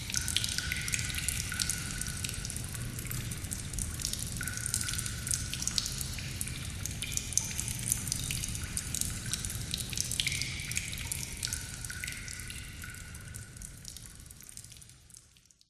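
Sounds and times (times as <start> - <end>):
water drips and splatters in a cave: 0.0 - 15.6.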